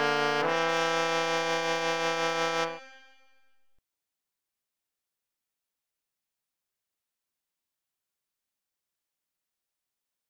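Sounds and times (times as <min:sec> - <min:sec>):
trumpet and trombone duet: 0:00.0 - 0:02.9.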